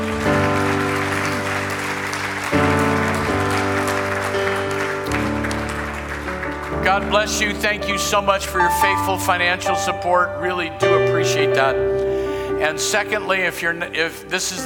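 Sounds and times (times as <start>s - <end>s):
crowd clapping hands: 0.0s - 9.1s
speech: 6.9s - 14.6s.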